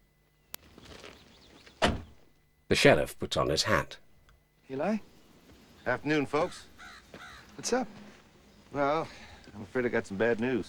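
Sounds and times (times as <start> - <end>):
sheriff's car door thud: 1.8 - 2.2
speech: 2.7 - 4.0, 4.7 - 5.1, 5.8 - 8.0, 8.7 - 10.6.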